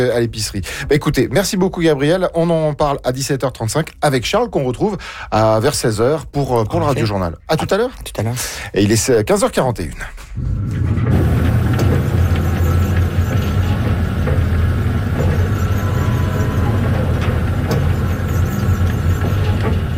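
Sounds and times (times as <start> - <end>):
speech: 0.0 - 11.2
oil pumpjacks pumping oil from the ground: 10.3 - 19.9.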